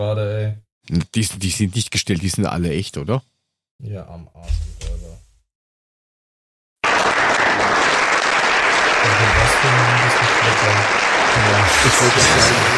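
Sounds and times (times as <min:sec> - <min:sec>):
speech: 0:00.0 - 0:05.2, 0:10.5 - 0:12.7
applause in the Chinese National People's Congress: 0:06.8 - 0:12.7.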